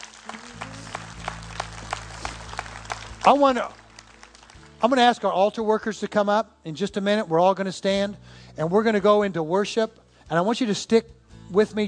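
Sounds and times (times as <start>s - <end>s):
audience hand clapping: 0.0s - 5.4s
speech: 3.3s - 3.8s, 4.8s - 11.8s.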